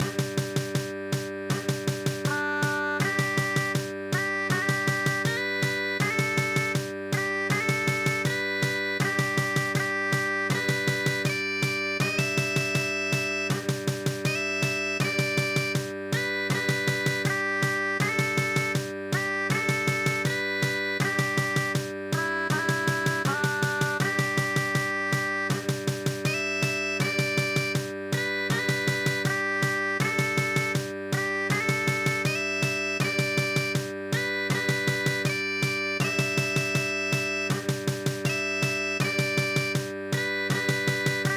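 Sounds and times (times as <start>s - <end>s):
traditional Scottish folk song: 0.0s - 41.3s.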